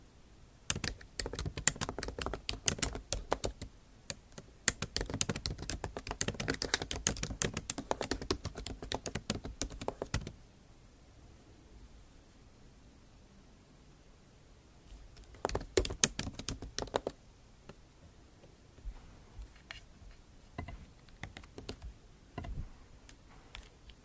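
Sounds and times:
fast dense tapping and scratching: 0.7 - 10.3, 15.2 - 17.2, 20.6 - 22.6.

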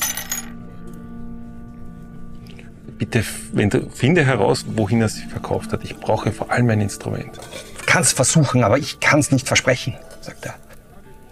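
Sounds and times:
gold coins sliding across a table: 0.0 - 0.6
speech: 3.0 - 10.7.

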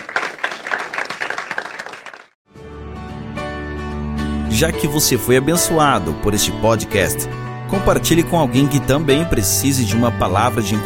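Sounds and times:
audience applause: 0.0 - 2.4
speech: 4.6 - 10.8.

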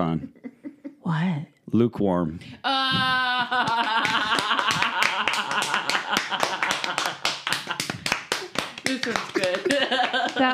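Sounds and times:
speech: 0.0 - 0.4, 1.1 - 4.8
laughter: 2.7 - 8.1, 8.8 - 10.5
one person clapping hands: 3.5 - 10.5.

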